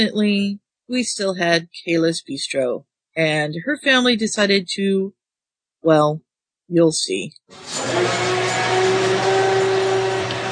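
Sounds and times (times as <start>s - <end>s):
speech: 0.0s - 5.2s, 5.8s - 8.4s
blender running: 7.5s - 10.5s.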